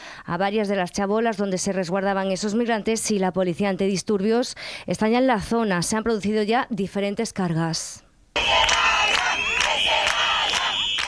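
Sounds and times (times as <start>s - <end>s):
speech: 0.3s - 8.7s
protesters shouting a chant: 8.4s - 11.0s.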